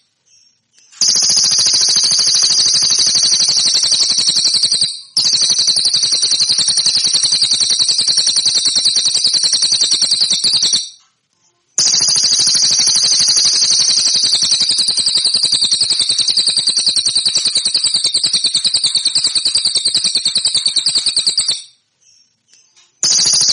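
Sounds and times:
song: 0:00.3 - 0:11.1, 0:11.8 - 0:23.5.

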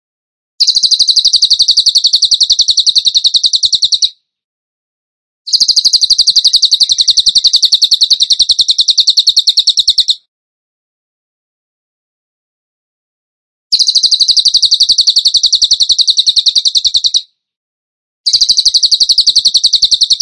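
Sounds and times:
bird trilling: 0:00.6 - 0:04.2, 0:05.5 - 0:10.3, 0:13.7 - 0:17.3, 0:18.3 - 0:20.2.

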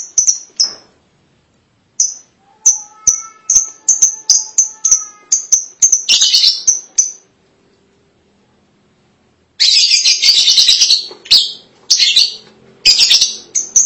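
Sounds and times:
lovebird chatter: 0:02.0 - 0:07.3, 0:09.6 - 0:13.8.

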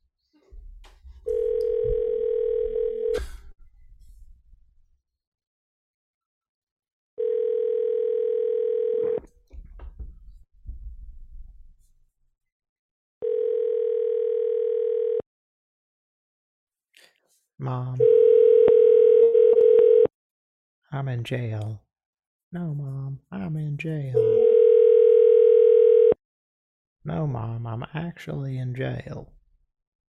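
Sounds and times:
telephone ringing tone on the line: 0:01.3 - 0:03.2, 0:07.2 - 0:09.3, 0:13.2 - 0:15.2, 0:18.0 - 0:20.1, 0:24.2 - 0:26.2
speech: 0:17.6 - 0:18.6, 0:20.9 - 0:21.9, 0:22.5 - 0:24.5, 0:27.0 - 0:29.4.

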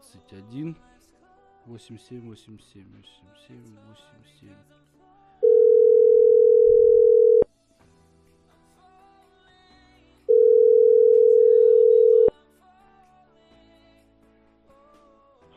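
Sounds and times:
telephone ringback tone while a call is placed: 0:05.4 - 0:07.5, 0:10.3 - 0:12.3.

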